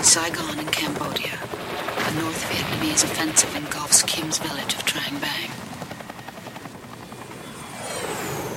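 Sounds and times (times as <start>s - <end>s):
military aircraft attacking from the air, roaring overhead: 0.0s - 8.5s
speech: 0.1s - 5.9s.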